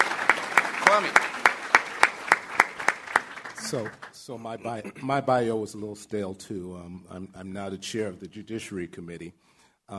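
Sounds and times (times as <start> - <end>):
audience clapping for a speaker: 0.0 - 4.8
speech: 0.9 - 1.3, 3.7 - 9.9.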